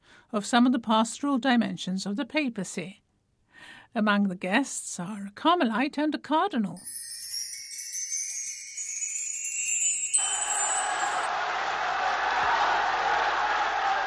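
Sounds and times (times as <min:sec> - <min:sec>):
speech: 0:00.3 - 0:03.0, 0:03.9 - 0:07.1
prisoners cheering: 0:09.9 - 0:14.0.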